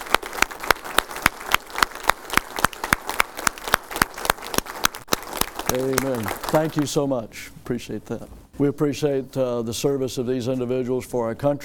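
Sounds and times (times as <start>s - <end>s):
audience applause: 0.0s - 6.9s
speech: 5.7s - 11.6s.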